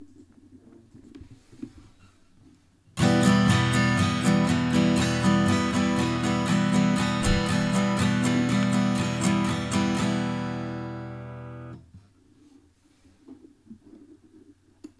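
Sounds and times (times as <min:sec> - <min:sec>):
guitar strumming E minor down-up pattern: 0:03.0 - 0:11.8.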